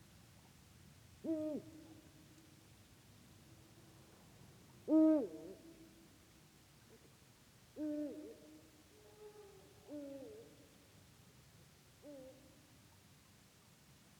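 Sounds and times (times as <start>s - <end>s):
Bubo bubo eagle owl: 1.2s - 2.0s, 4.9s - 5.7s, 7.8s - 10.6s, 12.0s - 12.5s.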